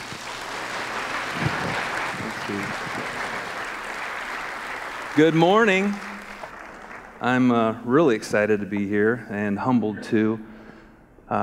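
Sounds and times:
church audience applause welcoming a guest speaker: 0.0s - 8.5s
speech: 5.2s - 6.1s, 7.2s - 10.5s.

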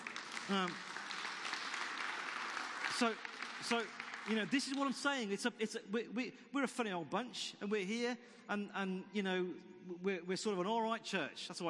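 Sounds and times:
audience applauding: 0.0s - 5.0s
speech: 0.5s - 0.9s, 3.0s - 11.6s.

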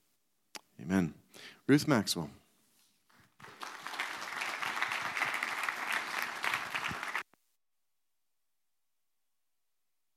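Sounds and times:
speech: 0.8s - 2.4s
audience applause: 3.4s - 7.2s.

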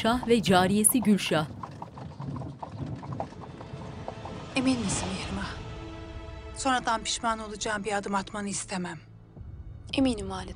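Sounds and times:
speech: 0.0s - 1.6s, 4.6s - 5.6s, 6.6s - 9.1s, 9.9s - 10.5s
horse hooves of a royal carriage on a forest road: 0.0s - 4.6s.

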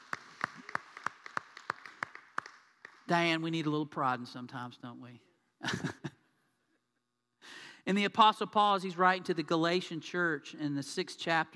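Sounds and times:
audience clapping in a steady quick rhythm: 0.0s - 3.4s
speech: 3.1s - 5.9s, 7.9s - 11.5s.

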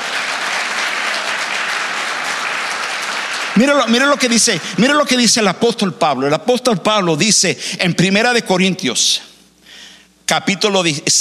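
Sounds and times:
audience applause: 0.0s - 4.8s
speech: 3.6s - 9.3s, 10.3s - 11.2s.

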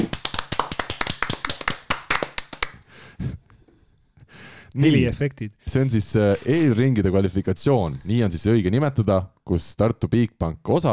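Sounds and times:
hand clapping from a few people: 0.0s - 2.8s
speech: 4.7s - 10.9s.

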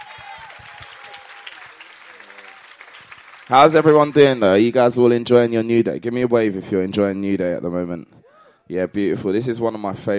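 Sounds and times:
faint audience voices and cheers: 0.0s - 3.7s
audience clapping: 0.0s - 4.8s
speech: 3.5s - 10.1s.

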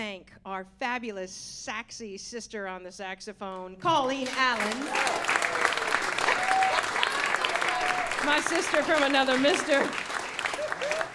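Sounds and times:
speech: 0.2s - 6.9s, 8.2s - 10.2s
audience applause: 4.2s - 11.1s.

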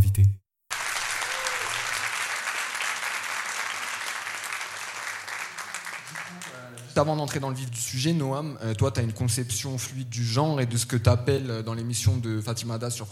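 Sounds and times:
audience applause: 0.7s - 7.0s
speech: 7.0s - 13.1s.

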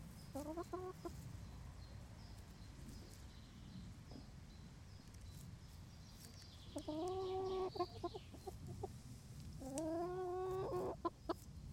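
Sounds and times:
chickens giving long nasal calls: 0.1s - 1.4s, 6.1s - 11.6s
chickens clucking softly: 0.1s - 1.5s, 4.0s - 11.6s
speech: 0.3s - 1.3s, 6.8s - 8.1s.

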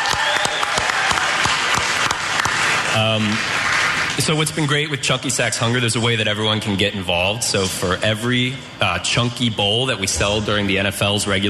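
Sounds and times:
audience clapping: 0.0s - 4.8s
speech: 3.0s - 3.6s, 4.2s - 11.4s.

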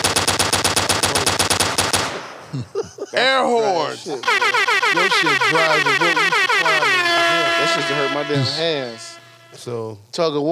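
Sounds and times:
machine gun fire: 0.0s - 2.4s
laughter: 1.0s - 1.4s, 2.0s - 9.6s
speech: 2.5s - 10.5s.

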